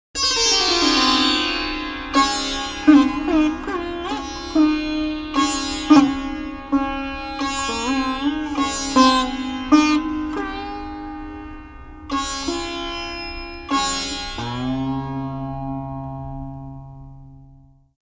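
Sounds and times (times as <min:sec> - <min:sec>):
sitar: 0:00.2 - 0:18.0.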